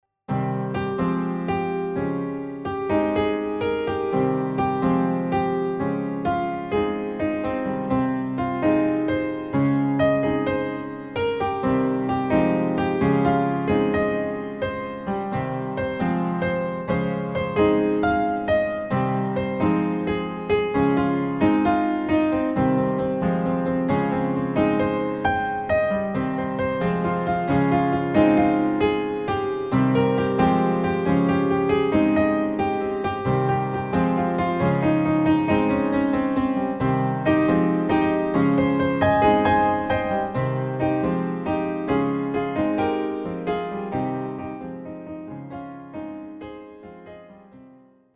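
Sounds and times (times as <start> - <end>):
dancing piano music: 0.3 - 48.1.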